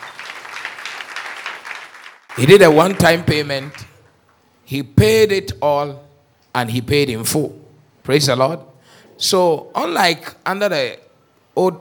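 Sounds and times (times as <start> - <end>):
audience clapping: 0.0 - 4.2
speech: 2.4 - 3.9, 4.7 - 6.0, 6.6 - 11.0, 11.6 - 11.7.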